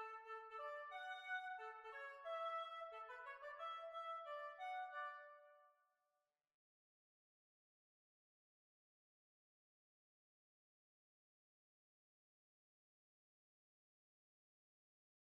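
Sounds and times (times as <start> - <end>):
hornpipe tune: 0.0 - 5.4.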